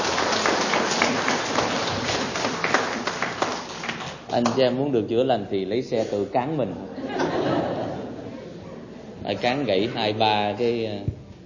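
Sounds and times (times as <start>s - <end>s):
audience applause: 0.0s - 4.2s
speech: 4.3s - 7.0s, 9.3s - 11.2s
laughter: 6.9s - 10.1s.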